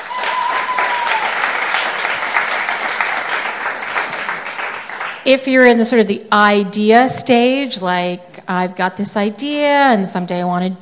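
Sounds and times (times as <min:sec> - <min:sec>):
crowd clapping: 0:00.0 - 0:05.3
speech: 0:05.2 - 0:10.8.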